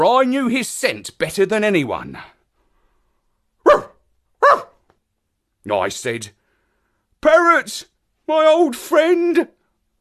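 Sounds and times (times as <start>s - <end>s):
speech: 0.0s - 2.3s, 5.6s - 6.4s, 7.2s - 9.6s
dog barking: 3.6s - 4.8s.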